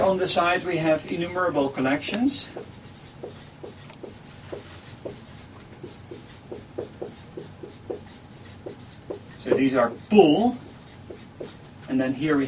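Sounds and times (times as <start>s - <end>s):
speech: 0.2s - 3.4s, 9.6s - 10.6s, 11.9s - 12.4s
scratchy strokes of a picture drawn by hand: 2.0s - 11.8s.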